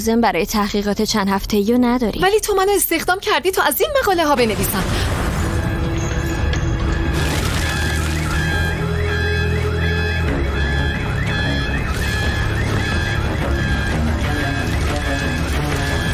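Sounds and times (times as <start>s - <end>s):
speech: 0.0s - 5.2s
car alarm wailing: 5.4s - 16.1s.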